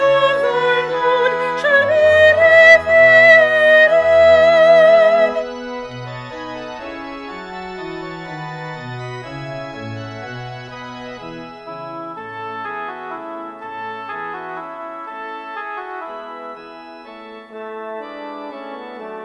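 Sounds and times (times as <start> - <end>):
soprano singing: 0.0 - 7.6.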